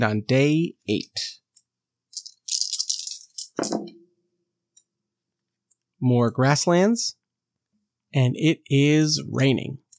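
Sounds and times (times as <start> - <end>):
speech: 0.0 - 1.4, 6.0 - 7.2, 8.1 - 9.8
dice being rolled: 2.1 - 4.0.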